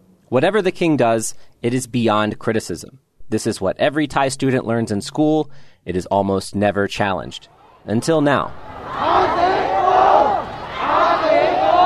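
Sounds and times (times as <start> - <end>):
speech: 0.3 - 9.5
protesters shouting a slogan in Bangkok: 7.5 - 11.8.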